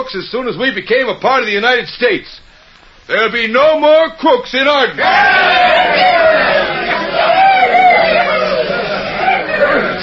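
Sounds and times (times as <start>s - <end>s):
speech: 0.0s - 2.4s, 3.1s - 6.3s
crowd cheering and shouting: 5.0s - 10.0s.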